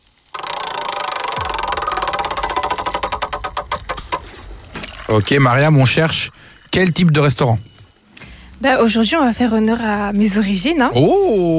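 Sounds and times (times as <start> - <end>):
spun prize wheel ratcheting clicks: 0.2 - 7.8
speech: 5.1 - 7.7, 8.6 - 11.5.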